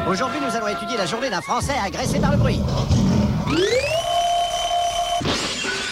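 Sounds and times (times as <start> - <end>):
speech: 0.1 - 3.9
electronic alarm clock tone: 3.4 - 5.9.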